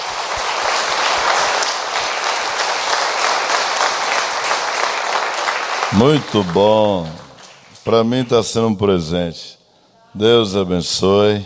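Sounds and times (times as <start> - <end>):
audience applause: 0.0 - 8.4
speech: 5.9 - 7.2, 7.9 - 11.4.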